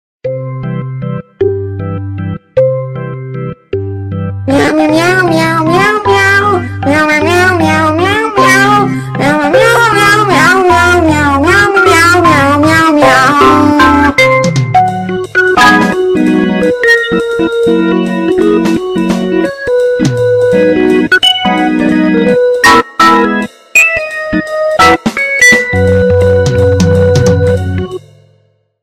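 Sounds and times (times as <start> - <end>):
ringtone melody: 0.2 - 28.0.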